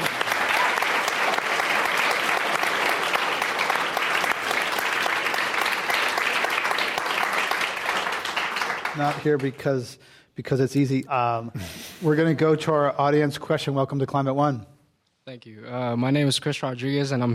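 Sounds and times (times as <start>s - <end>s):
audience applause at a live climate-action event: 0.0s - 9.6s
speech: 9.0s - 14.7s, 15.3s - 17.3s.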